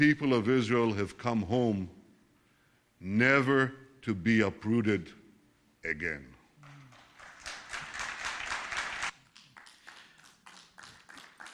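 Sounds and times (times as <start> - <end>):
speech: 0.0 - 2.0, 3.0 - 5.2, 5.8 - 6.3
delegation clapping in assembly hall: 6.6 - 11.5.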